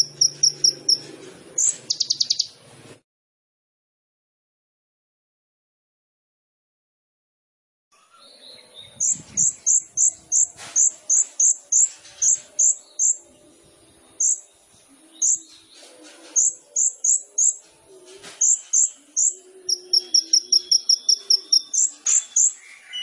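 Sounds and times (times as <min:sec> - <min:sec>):
faint lower chatter: 0:00.0 - 0:02.6, 0:08.0 - 0:23.0
sunbird singing: 0:00.0 - 0:02.6, 0:08.0 - 0:23.0.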